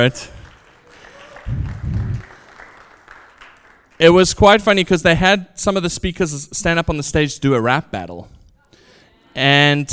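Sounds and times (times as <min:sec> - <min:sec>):
speech: 0:00.0 - 0:00.4, 0:04.0 - 0:08.4, 0:09.4 - 0:09.9
audience clapping: 0:00.0 - 0:04.4.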